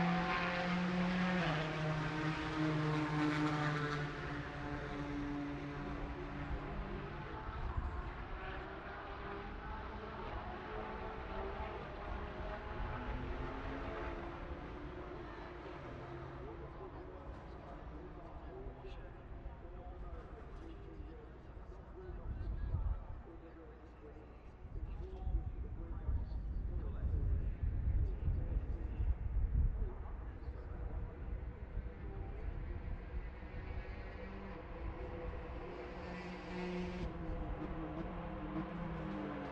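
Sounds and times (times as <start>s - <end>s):
racing engines roaring as vehicles pass: 0.0s - 21.8s, 30.2s - 39.5s
faint voices: 0.0s - 39.5s.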